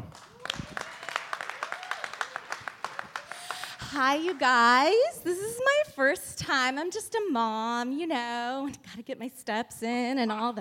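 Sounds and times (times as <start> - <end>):
audience applause: 0.0 - 5.0
speech: 3.9 - 10.5.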